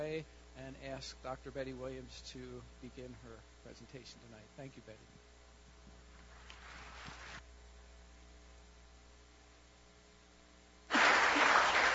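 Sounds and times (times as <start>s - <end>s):
speech: 0.0s - 5.2s
steady electrical hum: 0.0s - 11.9s
audience applause: 10.9s - 11.9s.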